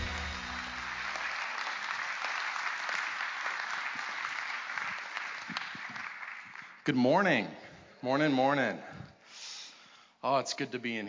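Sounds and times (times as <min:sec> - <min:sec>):
audience clapping at a church service to welcome a pastor: 0:00.0 - 0:06.9
speech: 0:06.9 - 0:08.9, 0:10.2 - 0:11.0.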